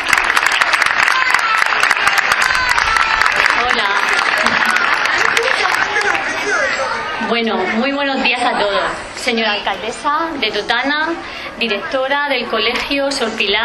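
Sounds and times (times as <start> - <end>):
audience applause: 0.0 - 7.1
speech: 7.3 - 13.6.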